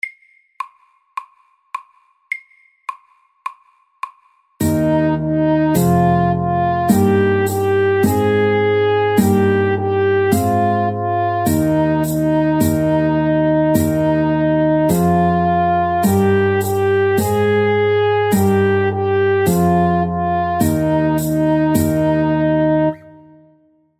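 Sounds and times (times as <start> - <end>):
Norwegian folk tune: 4.6 - 23.6.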